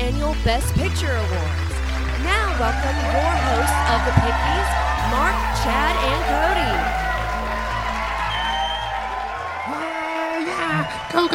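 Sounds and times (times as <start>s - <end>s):
crowd cheering and clapping: 0.0s - 11.3s
speech: 0.3s - 7.1s, 10.9s - 11.3s
rising whoop: 2.5s - 11.3s.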